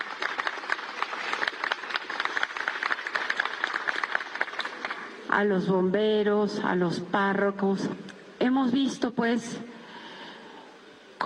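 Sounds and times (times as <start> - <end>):
audience applause: 0.0 - 5.2
speech: 5.3 - 9.7.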